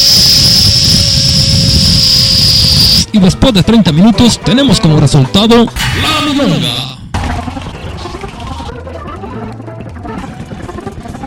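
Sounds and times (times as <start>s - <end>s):
blender mixing: 0.0s - 3.1s
speech: 3.1s - 7.0s.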